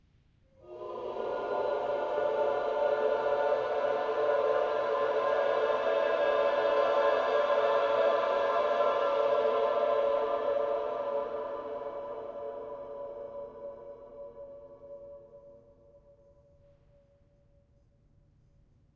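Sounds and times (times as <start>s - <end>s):
choir singing: 0.6s - 15.7s.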